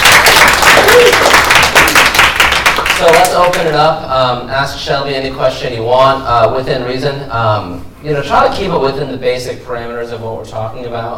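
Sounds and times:
audience clapping: 0:00.0 - 0:03.8
speech: 0:03.3 - 0:11.1.

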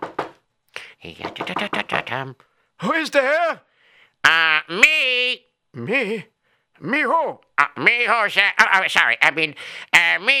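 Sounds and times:
knocking on a door: 0:00.0 - 0:00.4, 0:01.1 - 0:02.2
speech: 0:01.0 - 0:10.3.

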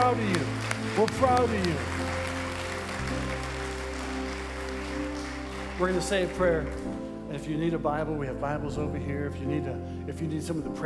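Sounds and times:
audience applause: 0:00.0 - 0:07.2
speech: 0:01.0 - 0:02.0, 0:05.8 - 0:10.8.

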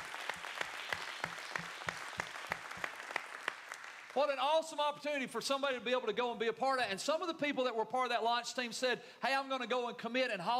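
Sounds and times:
audience applause: 0:00.0 - 0:04.4
speech: 0:04.2 - 0:10.5.

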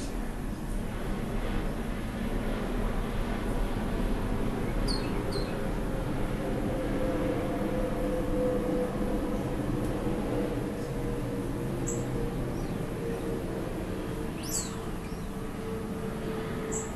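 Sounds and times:
birds chirping: 0:00.0 - 0:00.2, 0:04.7 - 0:05.7, 0:11.8 - 0:13.3, 0:14.2 - 0:15.5, 0:16.6 - 0:16.9
faint hum: 0:00.0 - 0:16.9
low engine rumble: 0:00.0 - 0:16.9.

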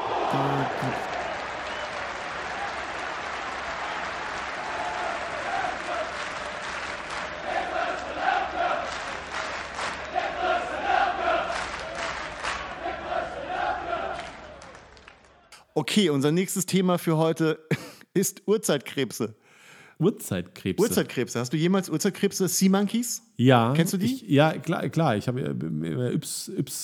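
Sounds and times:
stadium crowd shouting: 0:00.0 - 0:01.4, 0:07.4 - 0:08.9, 0:10.1 - 0:11.6, 0:12.7 - 0:14.3
big stadium crowd roaring and cheering during a Mexican wave: 0:00.0 - 0:15.5
speech: 0:00.3 - 0:01.2, 0:15.8 - 0:19.4, 0:20.0 - 0:26.8
laughter: 0:20.8 - 0:21.2, 0:23.7 - 0:24.7.

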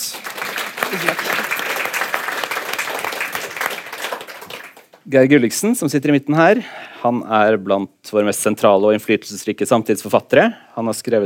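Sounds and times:
audience applause: 0:00.0 - 0:05.0
speech: 0:00.9 - 0:01.4, 0:05.1 - 0:11.2.

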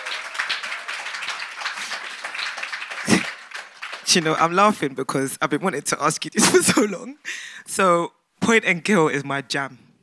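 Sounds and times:
audience applause: 0:00.0 - 0:04.7
speech: 0:04.1 - 0:09.8.

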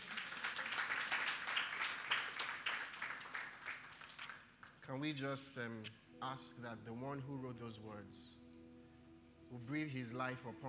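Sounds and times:
audience applause: 0:00.0 - 0:04.5
speech: 0:04.9 - 0:08.4, 0:09.5 - 0:10.6.

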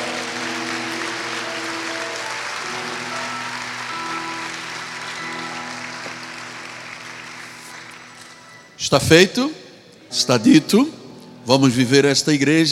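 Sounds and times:
audience applause: 0:00.0 - 0:08.5
sustained keyboard chords: 0:00.0 - 0:12.6
speech: 0:08.8 - 0:12.6.

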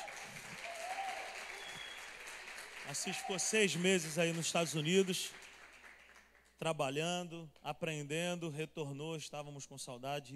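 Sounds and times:
audience applause: 0:00.0 - 0:06.3
speech: 0:02.9 - 0:05.4, 0:06.6 - 0:10.3.

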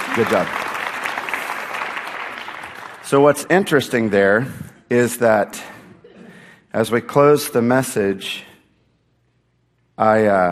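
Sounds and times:
audience clapping: 0:00.0 - 0:04.0
speech: 0:00.2 - 0:00.6, 0:03.1 - 0:05.8, 0:06.7 - 0:08.5, 0:10.0 - 0:10.5.

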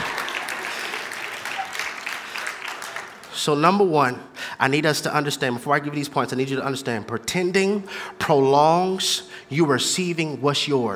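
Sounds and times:
audience clapping: 0:00.0 - 0:03.4
speech: 0:03.4 - 0:10.9.

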